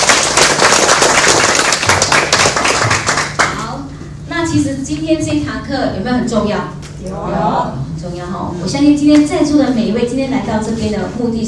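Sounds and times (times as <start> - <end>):
audience applause: 0.0 - 3.6
speech: 4.5 - 11.4.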